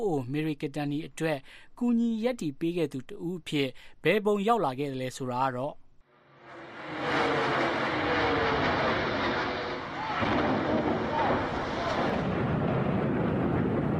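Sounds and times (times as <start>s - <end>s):
speech: 0.0s - 5.8s
World Trade Center collapsing in the 9/11 attacks: 6.3s - 13.9s.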